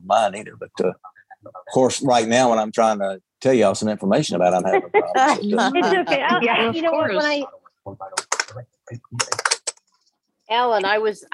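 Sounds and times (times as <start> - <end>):
speech: 0.1 - 1.1, 1.7 - 9.4, 10.5 - 11.3
laughter: 4.6 - 7.3
clicking computer keyboard being typed on: 9.2 - 10.1.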